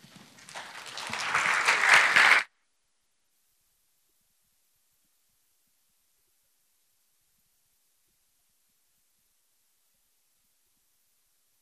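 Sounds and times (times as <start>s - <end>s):
congregation applauding at a church service: 0.2s - 2.5s.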